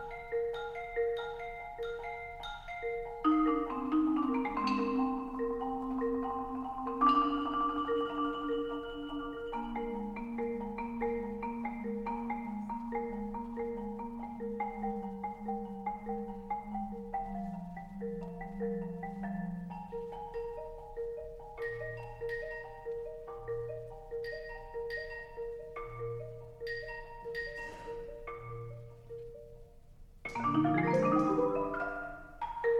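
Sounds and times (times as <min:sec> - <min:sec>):
percussion ensemble playing a pulse: 0:00.0 - 0:22.9, 0:23.5 - 0:29.0, 0:30.3 - 0:32.7.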